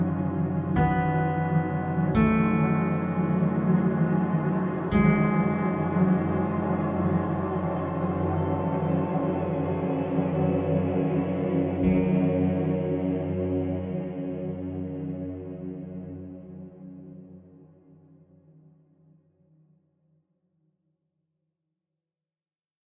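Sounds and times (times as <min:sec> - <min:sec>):
ambient music on two guitars: 0:00.0 - 0:17.2.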